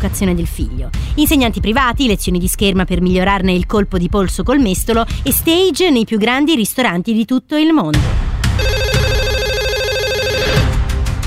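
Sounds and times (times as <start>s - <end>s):
speech: 0.0s - 8.2s
telephone ringing: 8.6s - 10.7s.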